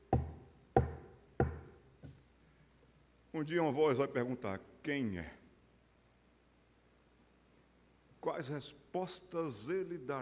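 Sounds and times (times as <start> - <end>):
knocking on a door: 0.1 - 1.7
speech: 3.4 - 5.4, 8.4 - 10.1.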